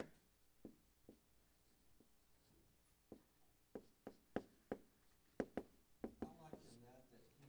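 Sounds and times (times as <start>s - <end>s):
marker writing on a board during a Bible lesson: 0.0s - 7.0s.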